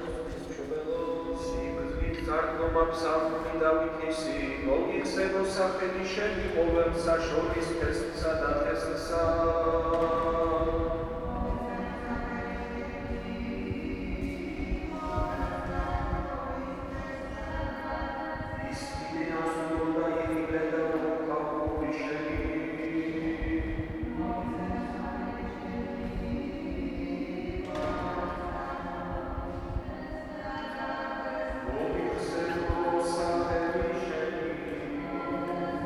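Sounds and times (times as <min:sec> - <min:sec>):
polyphonic liturgy singing in Sioni church in Tbilisi: 0:00.0 - 0:35.8.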